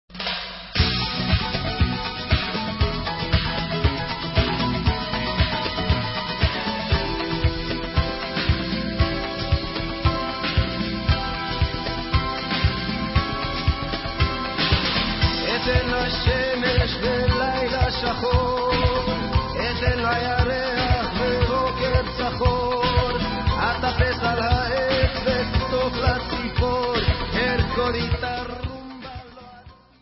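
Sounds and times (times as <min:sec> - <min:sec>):
rumba music: 0:00.1 - 0:29.9.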